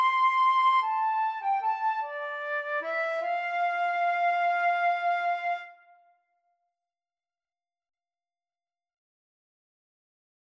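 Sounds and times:
flute duet: 0.0s - 6.0s.

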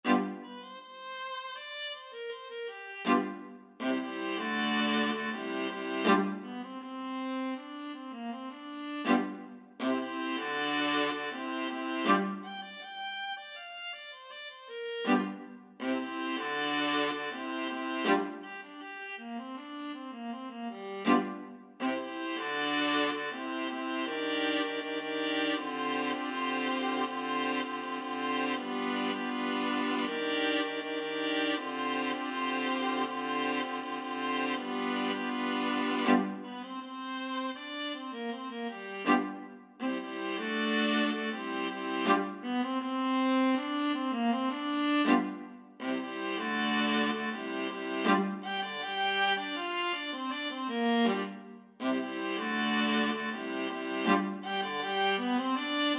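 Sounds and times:
viola ensemble: 0.0s - 55.9s.

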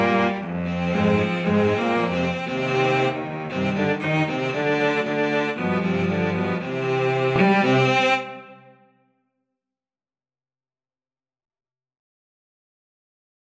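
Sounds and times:
cello quartet: 0.0s - 8.7s.

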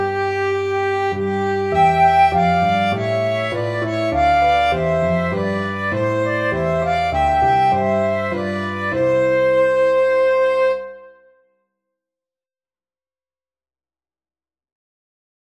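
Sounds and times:
violin: 0.0s - 11.1s
flute: 0.0s - 11.5s.

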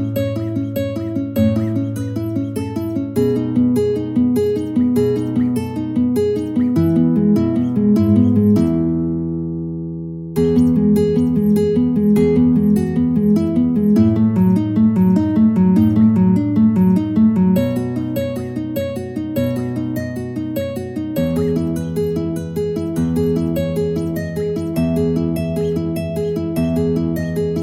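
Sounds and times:
guitar piece: 0.0s - 27.6s.

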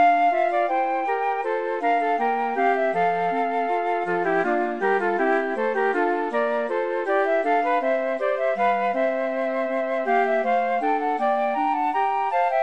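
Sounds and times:
2 flutes: 0.0s - 12.6s
clarinet: 0.0s - 12.6s.

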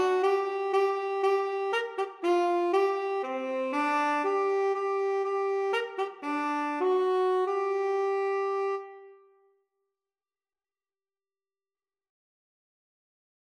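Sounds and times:
tenor saxophone duet: 0.0s - 9.4s.

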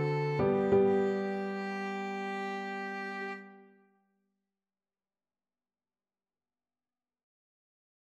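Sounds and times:
piano: 0.0s - 3.8s
violin: 0.0s - 3.8s.

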